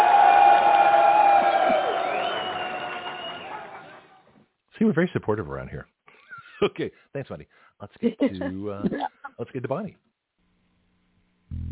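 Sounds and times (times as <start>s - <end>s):
round of applause with cheering: 0.0s - 4.2s
speech: 4.8s - 6.0s, 6.6s - 10.0s.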